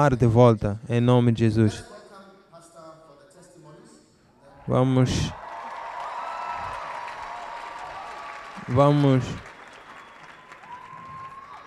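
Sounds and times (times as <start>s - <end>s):
speech: 0.0s - 1.9s, 4.7s - 5.4s, 8.7s - 9.5s
audience clapping hands: 5.4s - 11.6s.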